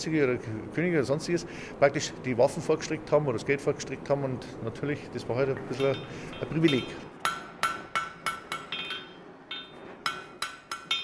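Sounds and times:
speech: 0.0 - 7.1
blacksmith hammering iron in a forge: 5.7 - 11.0.

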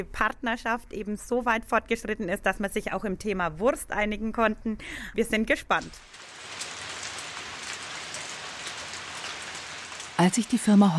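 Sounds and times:
speech: 0.0 - 6.4, 10.2 - 10.9
rain falling: 5.4 - 10.9.

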